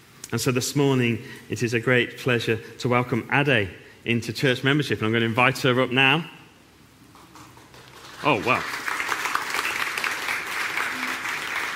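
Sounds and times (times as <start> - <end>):
speech: 0.3 - 6.4, 8.2 - 8.9
audience applause: 7.5 - 11.7.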